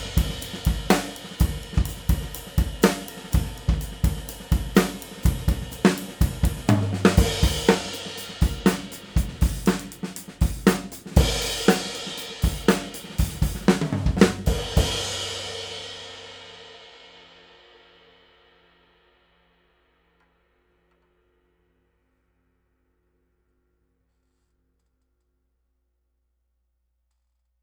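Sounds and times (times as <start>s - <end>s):
Crescent 22 Hammertone cymbal: 0.0s - 19.6s.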